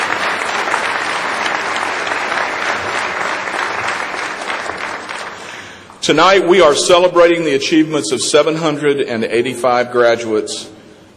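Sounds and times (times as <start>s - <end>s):
audience applause: 0.0s - 5.8s
speech: 6.0s - 10.7s.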